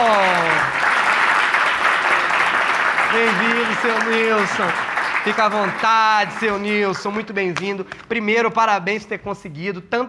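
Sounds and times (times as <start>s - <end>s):
audience applause: 0.0s - 7.6s
speech: 3.1s - 10.0s.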